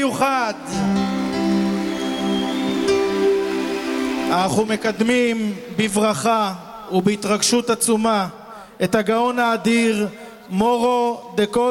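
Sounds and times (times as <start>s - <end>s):
speech: 0.0s - 1.1s, 4.3s - 11.6s
audience applause: 0.8s - 5.8s.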